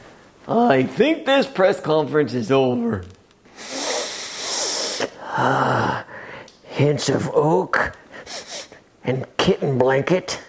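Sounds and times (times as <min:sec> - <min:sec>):
speech: 0:00.4 - 0:03.2, 0:05.4 - 0:06.1, 0:06.8 - 0:08.4, 0:09.0 - 0:10.4
person sniffing someone's hair: 0:03.5 - 0:06.5, 0:08.1 - 0:08.8.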